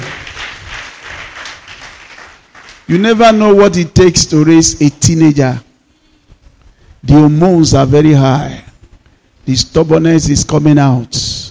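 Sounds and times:
audience clapping: 0.0 - 3.1
speech: 2.9 - 5.7, 7.0 - 8.7, 9.5 - 11.4.

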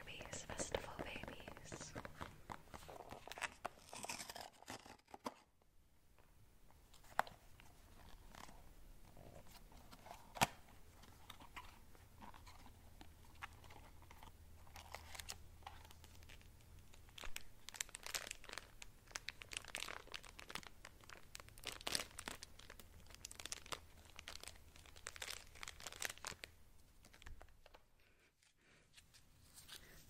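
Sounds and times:
blind box packaging crinkling and rustling during unboxing: 0.2 - 5.6, 6.9 - 27.9.

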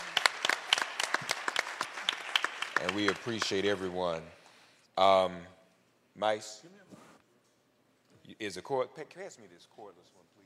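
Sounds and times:
audience applause: 0.0 - 3.9
speech: 2.8 - 4.4, 5.0 - 5.6, 6.2 - 6.9, 8.3 - 10.4.

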